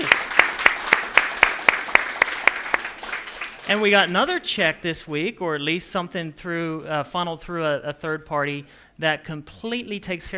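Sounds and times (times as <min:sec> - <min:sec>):
audience rhythmic clapping: 0:00.0 - 0:04.4
speech: 0:03.7 - 0:10.3.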